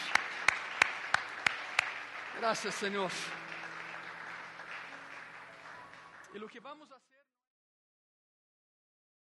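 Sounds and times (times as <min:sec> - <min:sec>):
audience applauding: 0:00.0 - 0:07.1
speech: 0:02.4 - 0:03.4, 0:06.3 - 0:07.1.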